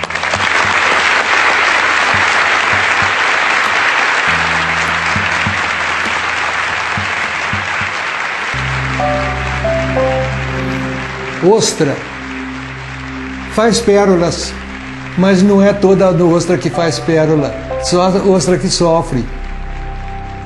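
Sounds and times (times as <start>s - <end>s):
newsroom staff applauding: 0.0s - 20.4s
soft melodic line: 2.2s - 7.9s, 8.6s - 20.4s
low sustained musical tone: 4.2s - 7.8s, 8.6s - 20.4s
speech: 11.4s - 12.2s, 13.6s - 14.6s, 15.2s - 19.4s.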